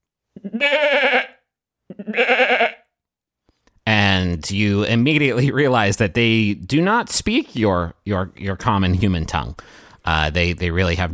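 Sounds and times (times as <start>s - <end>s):
speech: 0.4s - 1.3s, 4.4s - 11.1s
man bleating like a goat: 0.4s - 2.9s.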